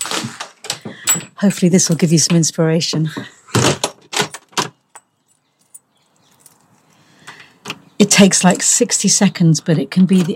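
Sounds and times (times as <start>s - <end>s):
outdoor ambience: 0.0s - 10.3s
speech: 1.4s - 3.4s, 8.0s - 10.3s
keys jangling: 4.2s - 7.0s.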